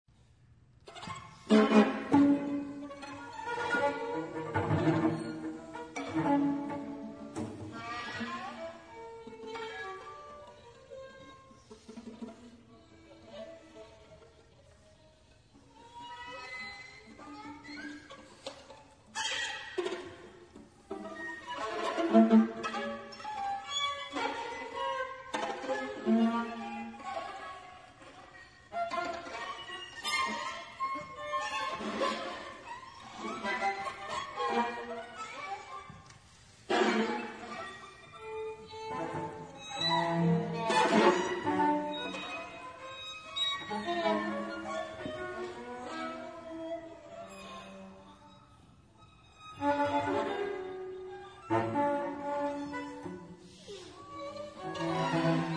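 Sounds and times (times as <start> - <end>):
string quartet: 0.1 - 55.5.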